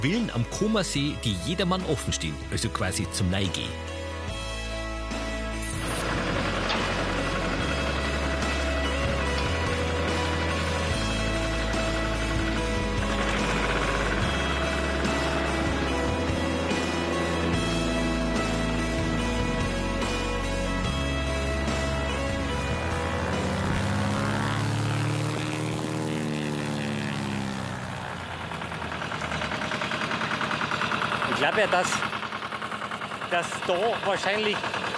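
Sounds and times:
speech: 0:00.0 - 0:04.0, 0:31.6 - 0:32.0, 0:33.3 - 0:34.9
seaplane propeller engine droning in flight: 0:00.0 - 0:34.9.

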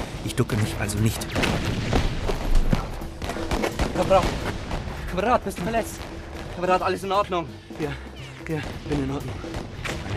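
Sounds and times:
speech: 0:00.2 - 0:02.1, 0:04.0 - 0:09.8
gunshot: 0:01.3 - 0:04.9.

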